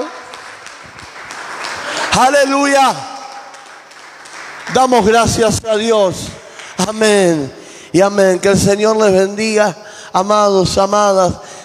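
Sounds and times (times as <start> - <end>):
audience applauding: 0.0 - 7.2
speech: 2.2 - 3.1, 4.7 - 11.5.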